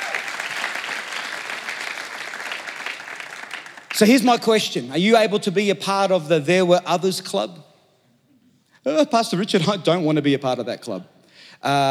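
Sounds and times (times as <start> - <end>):
audience applause: 0.0 - 4.0
speech: 4.0 - 7.6, 8.8 - 11.8.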